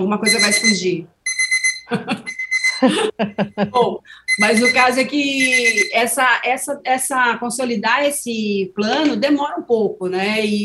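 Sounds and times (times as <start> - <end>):
speech: 0.0 - 1.2, 1.9 - 10.6
phone alarm beeping: 0.0 - 3.2, 4.1 - 6.4
laughter: 1.9 - 4.0.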